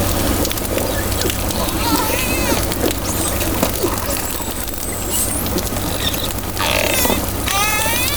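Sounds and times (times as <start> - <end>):
dolphin whistles: 0.8 - 8.1.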